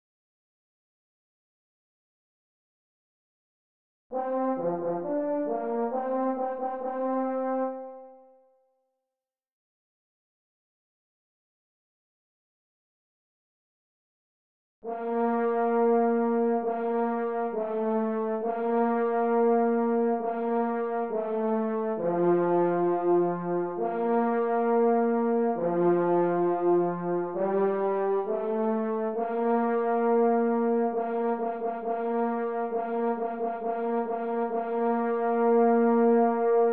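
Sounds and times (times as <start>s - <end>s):
French horn in F: 4.1s - 8.5s, 14.8s - 36.7s.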